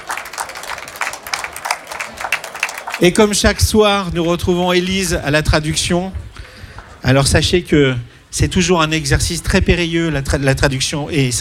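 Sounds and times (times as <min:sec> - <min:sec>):
audience applause welcoming a guest singer: 0:00.0 - 0:03.7
speech: 0:03.0 - 0:06.2, 0:07.0 - 0:11.3.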